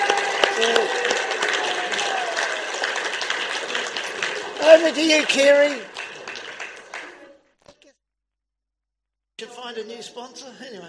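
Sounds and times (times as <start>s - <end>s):
audience clapping: 0.0s - 7.4s
speech: 4.8s - 5.9s, 9.7s - 10.8s.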